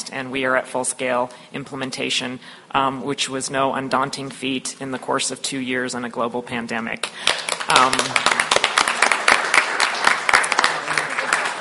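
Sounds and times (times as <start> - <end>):
speech: 0.1 - 8.4
audience applause: 7.2 - 11.5.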